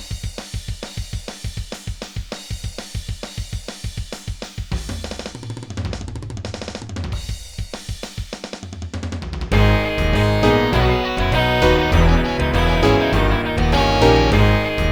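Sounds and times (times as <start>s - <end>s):
funk rock remix: 9.5s - 14.9s.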